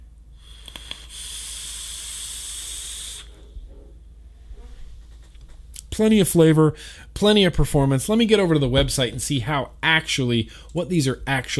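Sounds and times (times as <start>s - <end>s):
low hum: 0.0s - 11.5s
vaping hiss on an RDA atomizer: 0.4s - 3.6s
speech: 6.0s - 11.5s.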